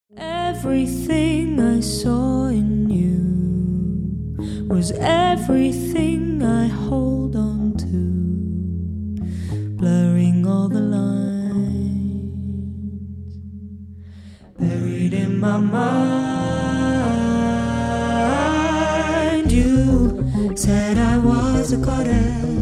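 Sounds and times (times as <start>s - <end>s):
person singing: 0.2s - 8.5s, 9.8s - 12.9s, 14.5s - 22.6s.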